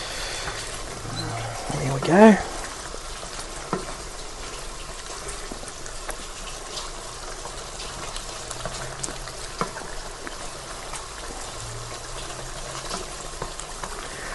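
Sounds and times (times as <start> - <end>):
pan boiling on the stove while being stirred: 0.0 - 14.3
speech: 1.7 - 2.5.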